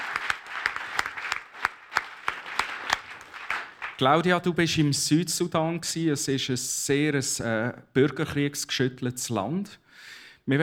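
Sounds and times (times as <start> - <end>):
small audience applause: 0.0 - 4.0
speech: 4.0 - 10.6.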